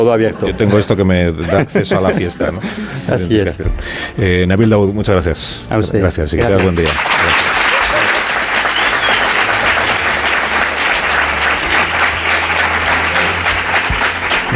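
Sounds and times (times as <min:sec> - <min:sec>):
laughter: 0:00.0 - 0:03.8, 0:07.1 - 0:14.5
speech: 0:00.0 - 0:07.3
studio audience applause: 0:06.4 - 0:14.5.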